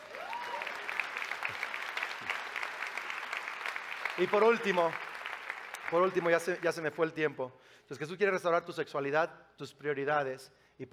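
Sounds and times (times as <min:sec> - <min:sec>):
audience applause: 0:00.0 - 0:06.8
speech: 0:04.2 - 0:05.1, 0:05.9 - 0:10.9.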